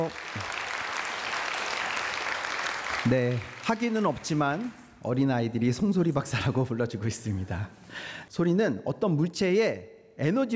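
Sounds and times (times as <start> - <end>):
speech: 0.0 - 0.5, 3.1 - 10.5
audience applause welcoming a guest lecturer to the stage: 0.0 - 4.9.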